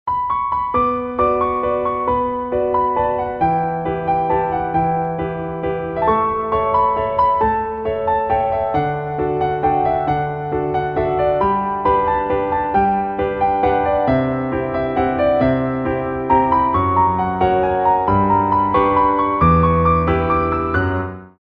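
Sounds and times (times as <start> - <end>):
piano: 0.0 - 21.4.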